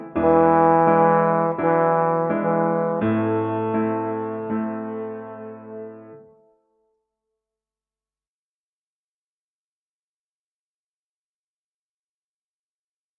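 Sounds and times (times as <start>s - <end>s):
small trombone: 0.0s - 6.4s
grand piano: 0.0s - 6.5s.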